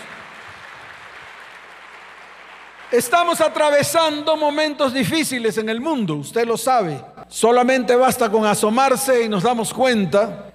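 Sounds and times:
audience applause: 0.0s - 3.4s
speech: 2.9s - 10.5s.

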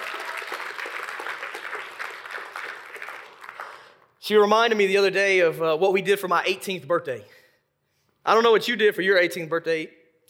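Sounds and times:
audience clapping: 0.0s - 4.2s
speech: 4.3s - 7.4s, 8.2s - 10.2s.

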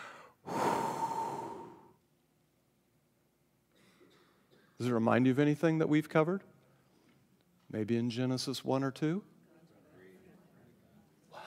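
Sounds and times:
voice blowing out breath imitating rushing wind: 0.0s - 1.9s
speech: 4.8s - 6.5s, 7.7s - 9.3s.

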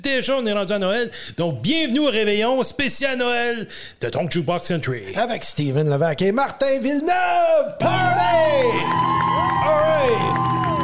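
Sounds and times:
speech: 0.0s - 10.7s
studio crowd cheering and whooping: 7.8s - 10.8s.

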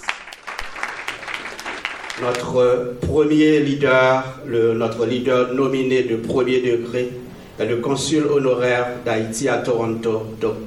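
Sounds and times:
audience applause: 0.0s - 2.4s
speech: 2.2s - 10.6s.

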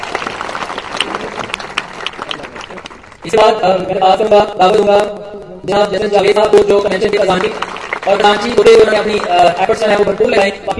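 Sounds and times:
audience applause: 0.0s - 3.2s, 7.0s - 10.7s
speech: 3.2s - 10.7s.

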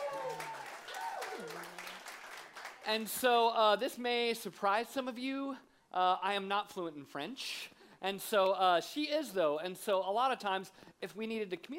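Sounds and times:
faint audience clapping: 0.0s - 3.3s
speech: 2.9s - 11.7s.

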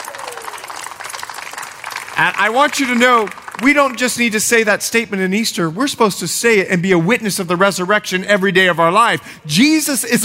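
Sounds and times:
audience applause: 0.0s - 4.5s
speech: 2.2s - 10.2s.

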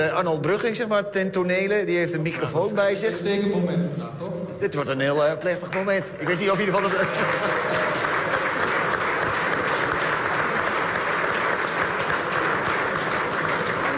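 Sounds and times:
speech: 0.0s - 7.8s
crowd applause: 5.8s - 13.9s.

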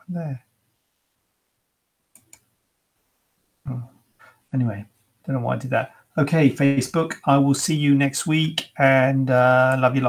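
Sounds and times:
speech: 0.1s - 0.5s, 4.5s - 10.0s
computer mouse clicks: 2.1s - 2.5s.

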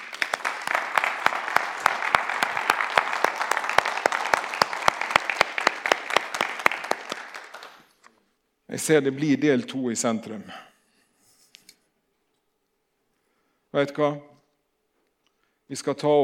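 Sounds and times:
audience applause: 0.0s - 8.0s
speech: 8.7s - 10.7s, 13.8s - 14.3s, 15.7s - 16.2s.

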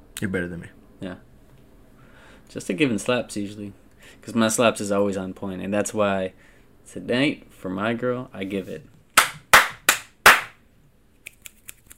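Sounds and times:
speech: 0.2s - 1.3s, 2.5s - 8.9s
hand claps: 9.2s - 10.6s.

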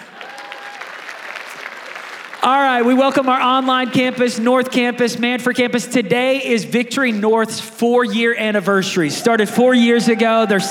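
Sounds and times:
audience at a church service applauding: 0.0s - 4.4s, 9.7s - 10.6s
speech: 2.4s - 10.6s.

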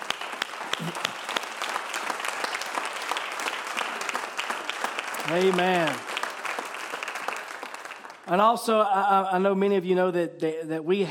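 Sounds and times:
audience applause for a speaker: 0.0s - 8.3s
speech: 0.8s - 1.1s, 5.3s - 6.1s, 8.3s - 11.0s.

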